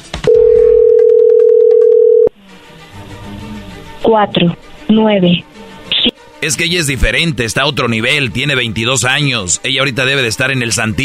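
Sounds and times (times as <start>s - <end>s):
telephone dialing tone: 0.3s - 2.3s
speech: 4.1s - 5.5s, 6.4s - 11.0s.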